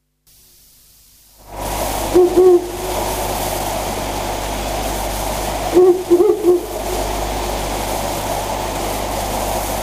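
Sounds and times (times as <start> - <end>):
low hum: 1.5 - 9.0
owl hooting in Mishima: 2.1 - 2.9, 5.7 - 7.1.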